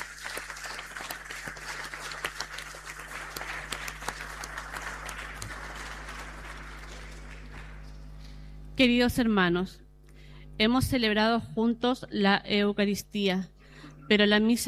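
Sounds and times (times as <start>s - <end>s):
audience applause: 0.0s - 8.1s
low steady hum: 0.0s - 14.6s
speech: 8.8s - 9.8s, 10.6s - 13.5s, 14.1s - 14.6s.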